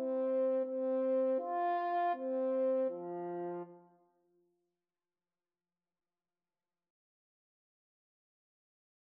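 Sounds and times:
clarinet and French horn duet: 0:00.0 - 0:03.8.

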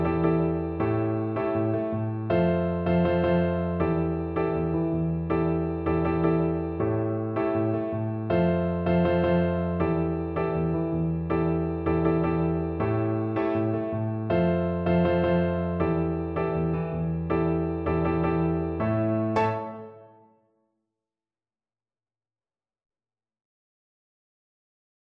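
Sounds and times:
double bass: 0:00.0 - 0:19.6.

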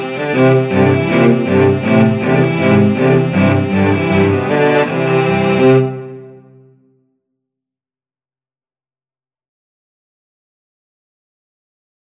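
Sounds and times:
cello quartet: 0:00.0 - 0:06.6.

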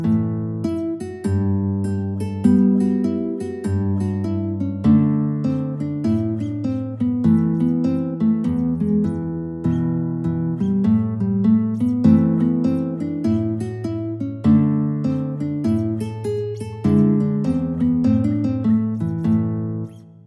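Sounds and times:
fingerstyle guitar: 0:00.0 - 0:20.2.

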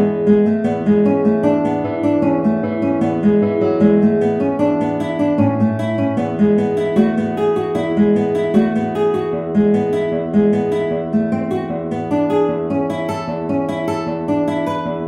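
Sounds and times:
guitar playing vivace: 0:00.0 - 0:15.0.

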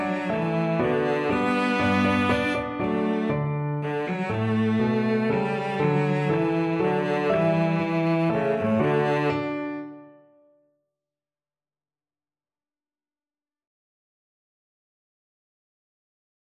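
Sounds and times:
cello playing a German dance: 0:00.0 - 0:10.2.

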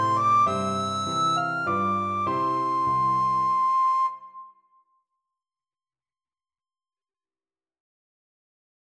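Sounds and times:
national anthem played on recorder: 0:00.0 - 0:04.4.

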